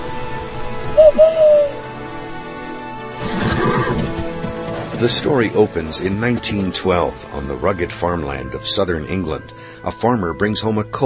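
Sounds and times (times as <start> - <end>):
person whistling: 1.0 - 1.8
rustling noise: 3.2 - 6.9
speech: 5.0 - 11.0.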